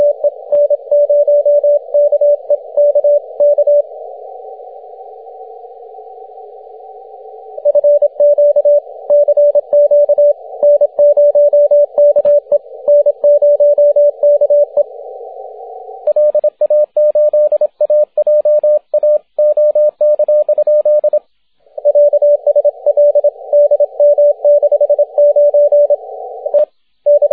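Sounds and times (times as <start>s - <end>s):
6m CW morse code signal: 0.0s - 3.8s, 7.6s - 14.9s, 16.1s - 21.2s, 21.8s - 27.3s.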